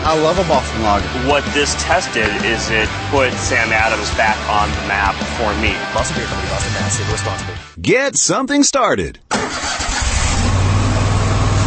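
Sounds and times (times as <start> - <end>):
speech: 0.1 - 9.3
Kubota Commander zero-turn lawn mower engine starting and running: 9.3 - 11.6.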